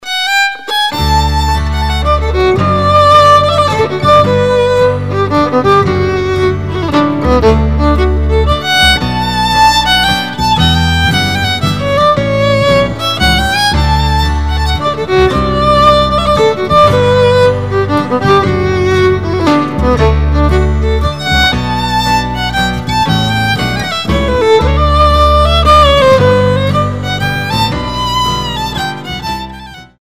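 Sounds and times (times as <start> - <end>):
waltz music: 0.1 - 29.9.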